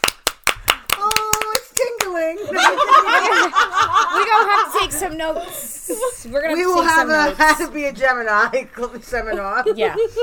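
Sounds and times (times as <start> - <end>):
applause, hand clapping: 0.0 - 2.2
laughter: 2.4 - 6.3, 9.2 - 10.2
speech: 4.9 - 10.2.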